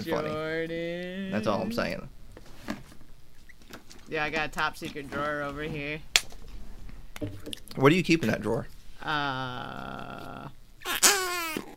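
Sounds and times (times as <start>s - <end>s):
speech: 0.0s - 2.2s, 4.1s - 6.2s, 7.2s - 11.7s
fart noises from squished flarp putty: 10.8s - 11.7s.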